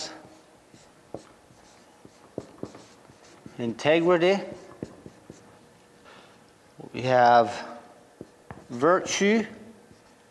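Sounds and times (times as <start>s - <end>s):
writing on a board: 0.0s - 5.7s, 8.2s - 10.3s
speech: 3.6s - 4.6s, 7.0s - 7.7s, 8.7s - 9.6s.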